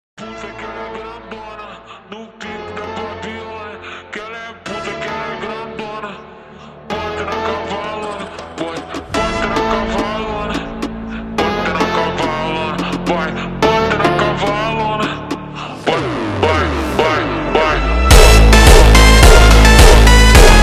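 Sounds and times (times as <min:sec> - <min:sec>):
super slowed jumpstyle music: 0:06.9 - 0:20.6.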